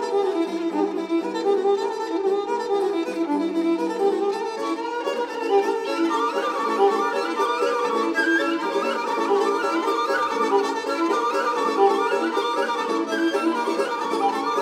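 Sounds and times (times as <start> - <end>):
Bulgarian folk melodies: 0.0 - 14.5.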